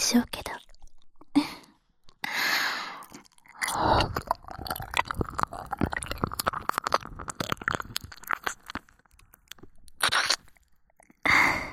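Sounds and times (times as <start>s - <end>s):
oral sex sounds: 0.1s - 11.7s
standing sex from behind sounds: 0.4s - 10.6s
nipple licking: 0.4s - 11.4s
ear licking: 2.9s - 11.3s.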